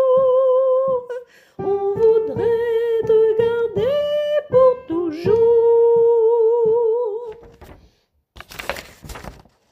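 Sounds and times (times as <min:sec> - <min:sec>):
soprano singing verse and chorus: 0:00.0 - 0:07.7.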